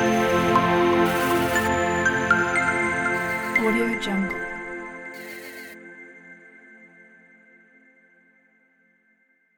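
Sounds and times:
digital logo sound: 0:00.1 - 0:05.7.

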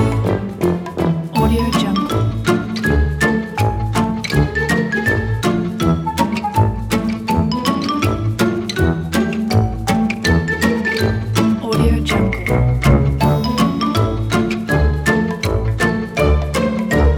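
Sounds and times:
cartoon music: 0:00.0 - 0:17.1.

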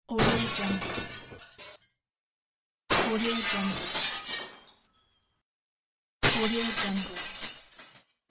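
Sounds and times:
thrown glass: 0:00.1 - 0:01.9, 0:02.9 - 0:05.4, 0:06.2 - 0:08.2.

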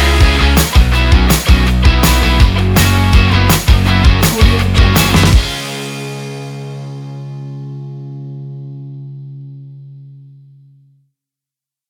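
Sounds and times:
uplifting energetic rock music: 0:00.0 - 0:07.8.

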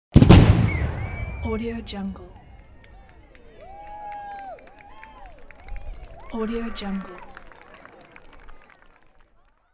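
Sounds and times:
cannon fire: 0:00.1 - 0:02.5
crowd applause: 0:02.2 - 0:09.7.

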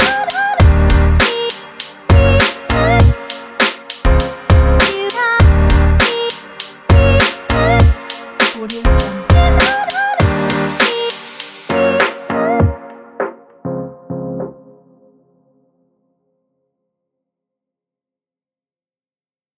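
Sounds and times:
hip hop music: 0:00.0 - 0:14.8.

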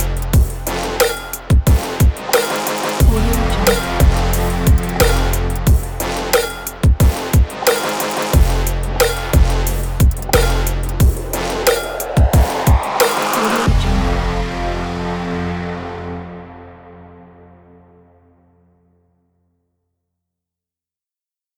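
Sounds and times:
workout music: 0:00.0 - 0:16.2.

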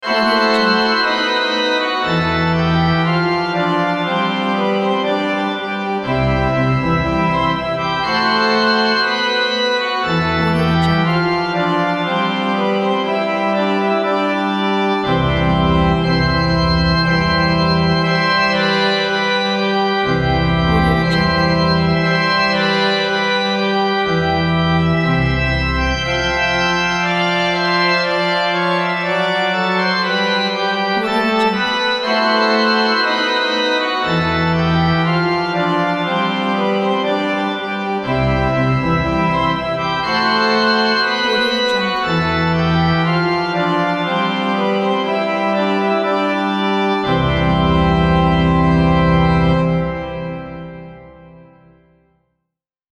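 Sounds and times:
church organ playing a wedding march: 0:00.0 - 0:51.8.

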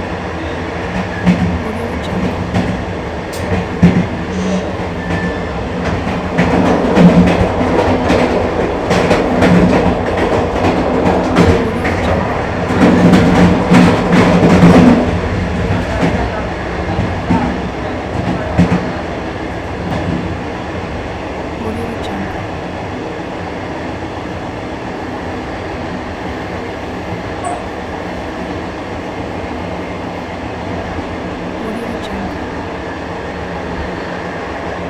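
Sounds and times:
train accelerating heard onboard in the vestibule: 0:00.0 - 0:34.8
train bumps: 0:00.8 - 0:20.4.

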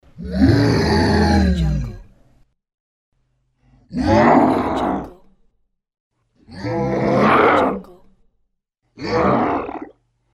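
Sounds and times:
mutant monster growls: 0:00.2 - 0:02.1, 0:03.9 - 0:05.2, 0:06.5 - 0:07.8, 0:09.0 - 0:10.0.

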